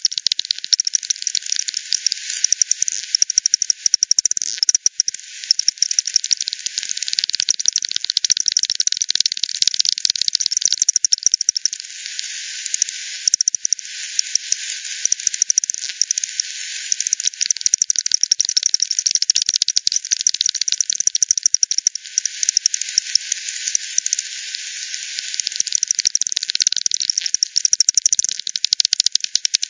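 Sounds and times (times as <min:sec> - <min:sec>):
bat echolocation clicks: 0:00.0 - 0:29.6
steady hiss: 0:11.7 - 0:15.2, 0:15.9 - 0:17.8, 0:22.1 - 0:26.1.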